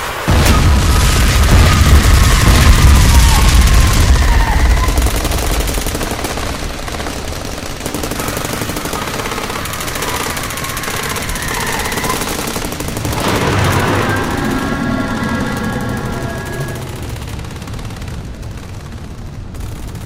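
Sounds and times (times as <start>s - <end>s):
heavy explosion booms in an audio drama battle: 0.3s - 6.9s, 12.5s - 19.6s
rapid machine-gun bursts in an audio drama battle: 1.0s - 20.0s.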